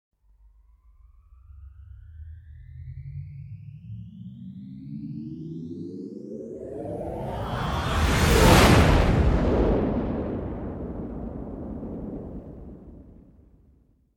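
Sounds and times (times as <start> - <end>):
Star Trek Enterprise B warp pass-by: 6.6 - 13.2.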